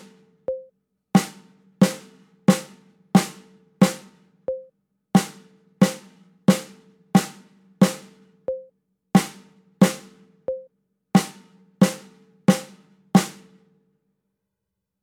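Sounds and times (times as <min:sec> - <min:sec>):
metronome click: 0:00.5 - 0:00.7, 0:03.9 - 0:04.7, 0:08.5 - 0:08.7, 0:10.5 - 0:10.7
snare drum duet: 0:01.2 - 0:04.6, 0:05.2 - 0:10.6, 0:11.2 - 0:13.6.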